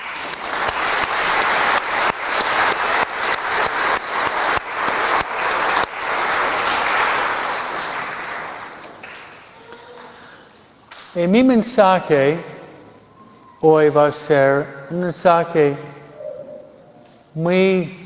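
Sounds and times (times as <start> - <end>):
audience applauding: 0.0 - 9.5
speech: 11.2 - 12.5, 13.6 - 16.0, 17.4 - 18.0.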